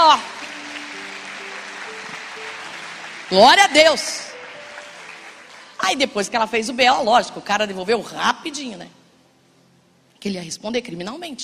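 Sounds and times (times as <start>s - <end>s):
audience applause: 0.0s - 5.8s
speech: 3.3s - 4.3s, 5.8s - 9.0s, 10.2s - 11.4s.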